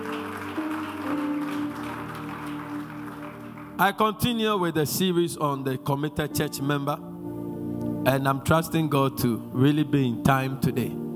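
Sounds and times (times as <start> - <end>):
audience clapping: 0.0 - 4.4
speech: 3.8 - 7.1, 8.0 - 11.0.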